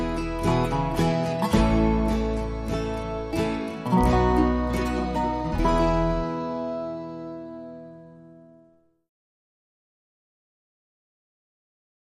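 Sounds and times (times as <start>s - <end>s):
dobro: 0.0s - 8.6s
mandolin: 0.0s - 8.8s.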